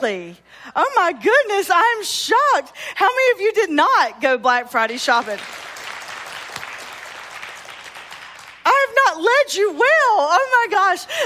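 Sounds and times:
speech: 0:00.0 - 0:05.7, 0:09.2 - 0:11.2
audience clapping: 0:05.1 - 0:08.7.

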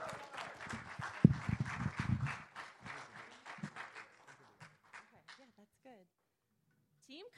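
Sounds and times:
audience applause: 0:00.0 - 0:05.2.

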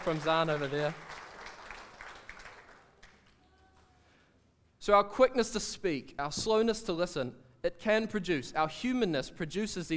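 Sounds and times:
speech: 0:00.0 - 0:01.2, 0:04.8 - 0:09.9
soft applause from a small crowd: 0:00.0 - 0:04.1.

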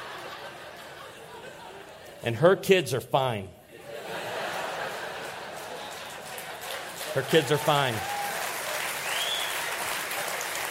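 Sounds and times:
laughter: 0:00.0 - 0:02.3, 0:03.7 - 0:08.1
speech: 0:02.2 - 0:03.6, 0:07.1 - 0:08.2
audience clapping: 0:04.4 - 0:10.7.

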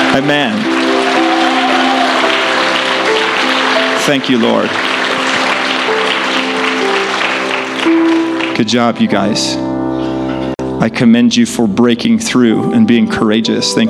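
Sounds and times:
audience applause: 0:00.0 - 0:08.9
speech: 0:00.2 - 0:00.7, 0:04.0 - 0:04.9, 0:08.6 - 0:09.7, 0:10.8 - 0:13.8.

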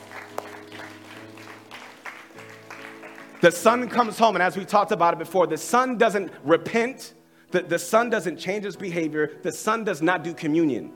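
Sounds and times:
audience applause: 0:00.0 - 0:04.4
speech: 0:03.4 - 0:10.9.

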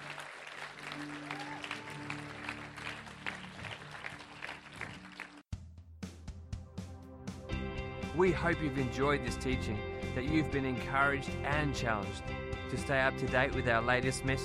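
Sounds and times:
audience applause: 0:00.0 - 0:05.4
speech: 0:08.2 - 0:14.4.

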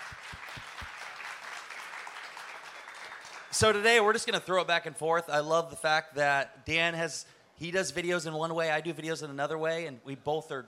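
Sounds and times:
crowd applause: 0:00.0 - 0:03.8
speech: 0:03.6 - 0:10.6.

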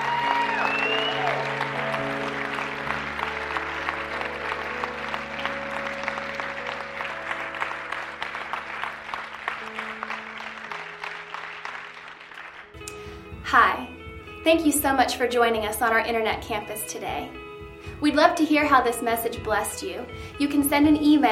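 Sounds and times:
church congregation applauding: 0:00.0 - 0:12.8
sustained keyboard chords: 0:00.0 - 0:19.6
speech: 0:14.5 - 0:17.4, 0:18.0 - 0:21.3.

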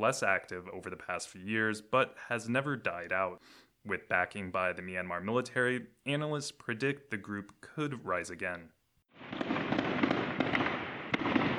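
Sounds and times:
speech: 0:00.0 - 0:09.5
gunfire during an armed attack: 0:09.1 - 0:11.5.

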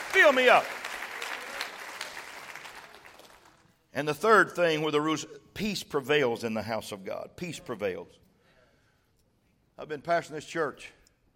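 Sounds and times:
crowd clapping hands: 0:00.0 - 0:03.8
speech: 0:00.1 - 0:00.8, 0:03.9 - 0:08.2, 0:09.8 - 0:11.0.

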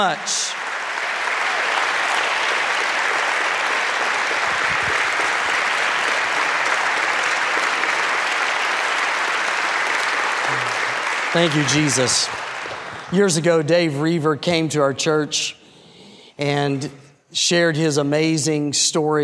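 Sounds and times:
speech: 0:00.0 - 0:00.6, 0:11.3 - 0:12.5, 0:13.1 - 0:15.6, 0:16.4 - 0:19.2
audience standing ovation applause: 0:00.0 - 0:13.7.

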